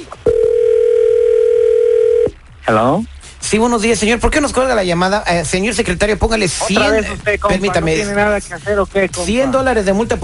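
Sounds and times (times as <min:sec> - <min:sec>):
telephone dial tone: 0:00.3 - 0:02.3
speech: 0:02.7 - 0:10.2.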